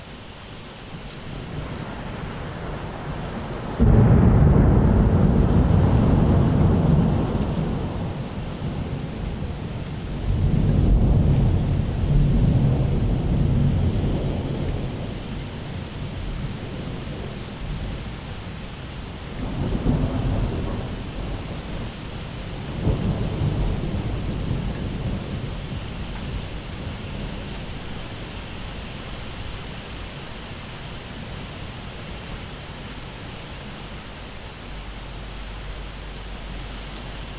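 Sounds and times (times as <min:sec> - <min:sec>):
summer storm: 0:02.7 - 0:15.2, 0:19.3 - 0:21.9, 0:22.6 - 0:27.5
thunder: 0:03.8 - 0:15.1, 0:19.4 - 0:21.9, 0:22.7 - 0:26.4.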